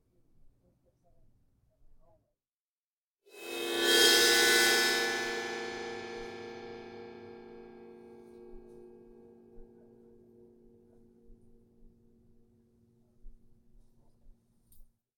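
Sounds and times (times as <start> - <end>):
bowed cymbal with high-pitched ringing: 3.4 - 10.3.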